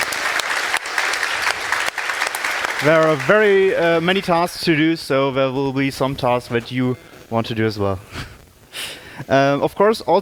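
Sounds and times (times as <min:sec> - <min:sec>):
audience applause: 0:00.0 - 0:04.2
speech: 0:02.8 - 0:08.3, 0:09.2 - 0:10.2.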